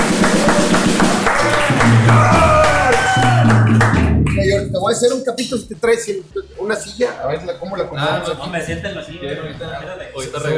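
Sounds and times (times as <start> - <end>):
audience applause: 0.0 - 4.4
speech: 4.9 - 10.5.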